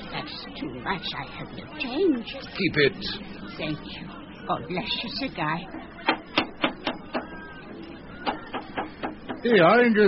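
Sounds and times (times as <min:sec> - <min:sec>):
speech: 0:00.6 - 0:05.9, 0:09.4 - 0:10.0
hammering: 0:06.0 - 0:07.4, 0:08.2 - 0:09.6.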